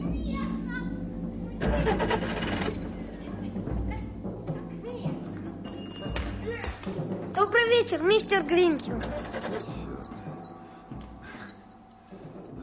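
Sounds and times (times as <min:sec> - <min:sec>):
children playing ball on the sidewalk: 0:00.0 - 0:11.4
car engine cranking and sputtering without catching: 0:01.6 - 0:03.1, 0:08.9 - 0:10.2
speech: 0:07.8 - 0:09.2.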